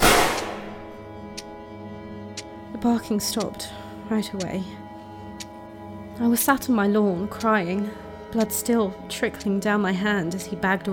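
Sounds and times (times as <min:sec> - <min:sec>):
rifle gunshot: 0:00.0 - 0:00.9
speech: 0:02.8 - 0:04.8, 0:06.2 - 0:10.9.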